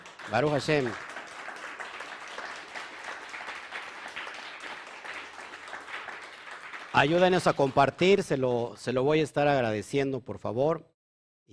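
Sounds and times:
crowd applause: 0.0 - 8.4
speech: 0.3 - 1.1, 7.0 - 10.9.

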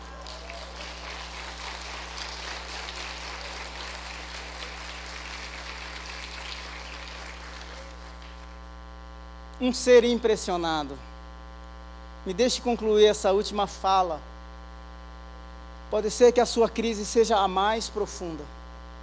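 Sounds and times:
audience clapping: 0.0 - 8.7
constant low electrical hum: 0.0 - 19.0
speech: 9.6 - 11.1, 12.2 - 14.3, 15.9 - 18.6.

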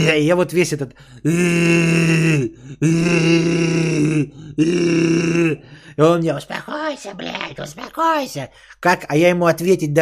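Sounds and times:
speech: 0.0 - 10.0
person imitating gagging and retching: 1.3 - 5.6, 6.6 - 8.1.

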